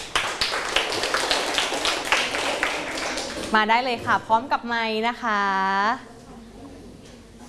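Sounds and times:
classroom clapping: 0.0s - 3.6s
speech: 3.5s - 6.1s.

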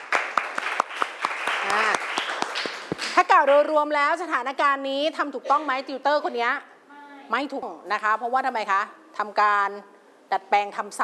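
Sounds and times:
classroom applause for a classmate: 0.0s - 3.2s
speech: 3.1s - 6.7s, 7.3s - 11.0s.

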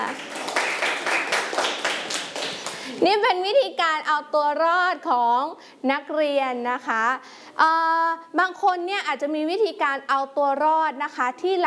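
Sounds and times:
class of students clapping for a classmate: 0.0s - 3.0s
speech: 3.0s - 11.6s.

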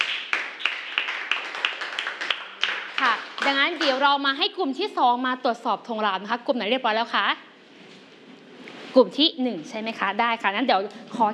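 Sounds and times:
group of children clapping in rhythm: 0.0s - 4.0s
speech: 3.5s - 7.5s, 9.0s - 11.3s.

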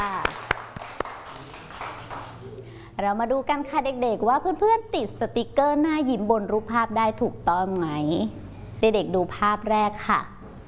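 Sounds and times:
children clapping: 0.0s - 2.6s
speech: 3.0s - 10.4s.

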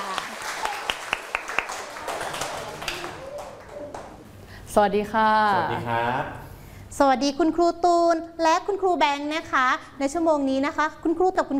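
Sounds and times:
children clapping hands: 0.0s - 4.2s
speech: 4.8s - 6.4s, 7.0s - 11.5s.

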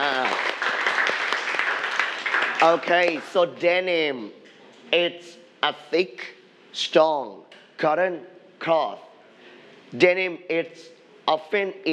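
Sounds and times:
students applauding during an English vocabulary lesson: 0.0s - 3.6s
speech: 2.6s - 9.1s, 9.9s - 11.9s.

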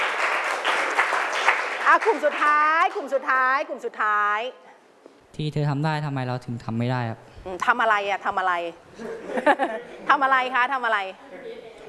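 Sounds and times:
audience clapping: 0.0s - 2.8s
speech: 1.9s - 4.7s, 5.4s - 11.6s
laughter: 9.0s - 10.1s.

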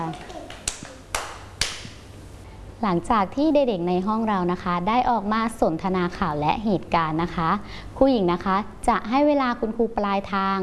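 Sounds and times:
schoolchildren clapping in a classroom for a classmate: 0.0s - 2.0s
speech: 2.8s - 10.6s.

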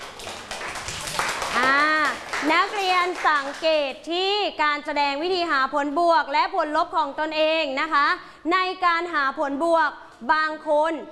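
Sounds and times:
classmates clapping in a classroom: 0.0s - 4.0s
speech: 2.4s - 11.0s.

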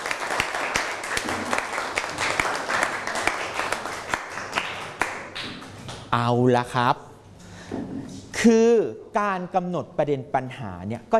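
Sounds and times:
students applauding: 0.0s - 5.8s
speech: 6.1s - 7.1s, 8.4s - 11.1s.

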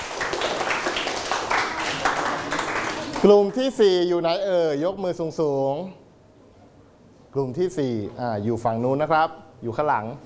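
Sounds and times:
audience clapping: 0.0s - 3.6s
speech: 3.2s - 6.0s, 7.3s - 10.2s.

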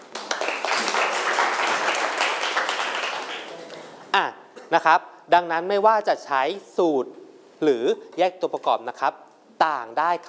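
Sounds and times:
group applause: 0.0s - 3.7s
speech: 4.7s - 10.2s.

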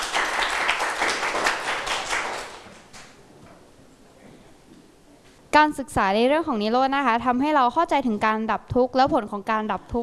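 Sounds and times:
classroom students clapping: 0.0s - 3.2s
speech: 5.6s - 10.0s.

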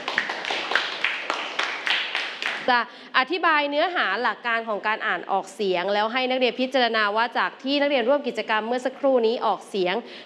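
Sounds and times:
students clapping: 0.0s - 2.7s
speech: 2.7s - 10.2s.

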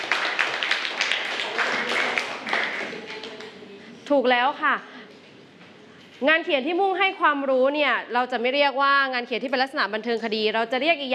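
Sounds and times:
classroom clapping: 0.0s - 3.6s
speech: 4.1s - 4.9s, 6.2s - 11.1s.

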